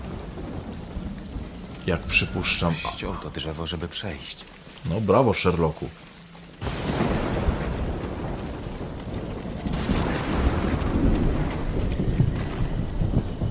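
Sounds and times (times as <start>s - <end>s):
thunder in a storm: 0.0s - 3.0s, 6.6s - 13.4s
heavy rain in a storm: 0.0s - 13.4s
speech: 1.8s - 6.1s.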